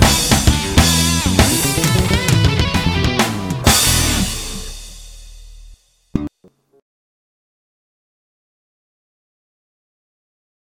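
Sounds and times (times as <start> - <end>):
blues music: 0.0 - 6.8.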